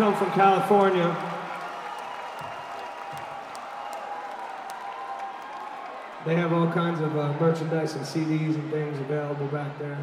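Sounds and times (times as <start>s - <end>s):
speech: 0.0s - 1.4s, 6.2s - 10.0s
audience applause: 0.0s - 6.9s.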